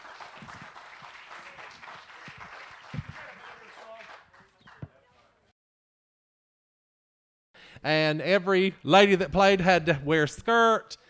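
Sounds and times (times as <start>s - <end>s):
audience applause: 0.0s - 4.9s
speech: 7.8s - 11.0s.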